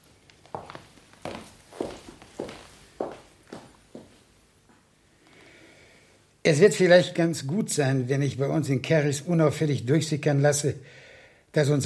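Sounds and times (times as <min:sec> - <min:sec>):
footsteps of someone walking out of a room in a radio drama: 0:00.0 - 0:04.8
speech: 0:06.5 - 0:11.8.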